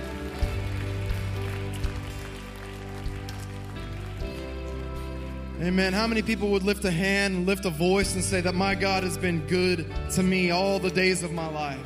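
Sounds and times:
audience applause: 0.0 - 6.3
speech: 5.6 - 11.8.

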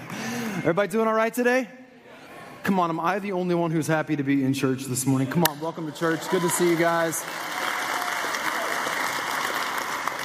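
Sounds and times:
speech: 0.6 - 1.8, 2.6 - 7.6
audience clapping loudly: 5.9 - 10.2.

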